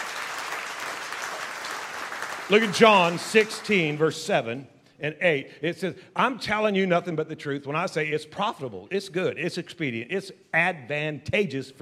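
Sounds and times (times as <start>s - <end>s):
audience clapping: 0.0s - 4.5s
speech: 2.5s - 11.7s.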